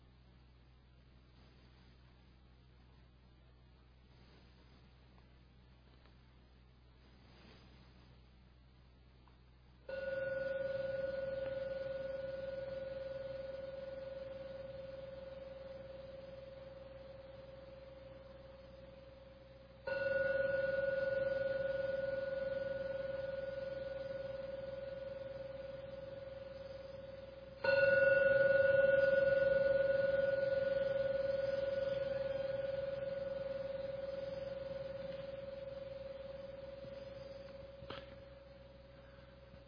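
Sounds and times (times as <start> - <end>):
meditation gong ringing: 9.9 - 39.6.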